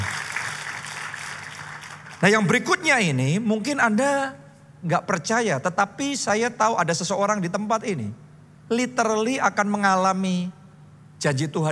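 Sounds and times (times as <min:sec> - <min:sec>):
audience applause: 0:00.0 - 0:02.2
speech: 0:02.2 - 0:10.6, 0:11.2 - 0:11.7.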